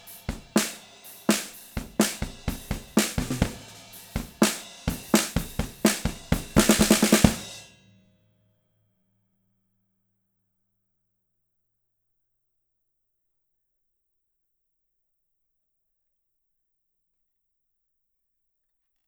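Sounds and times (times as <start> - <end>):
snare drum: 0.0 - 7.6.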